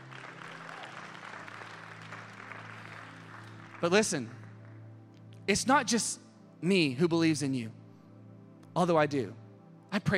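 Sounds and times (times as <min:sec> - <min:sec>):
audience clapping: 0:00.0 - 0:04.9
speech: 0:03.8 - 0:04.4, 0:05.5 - 0:07.8, 0:08.8 - 0:10.1.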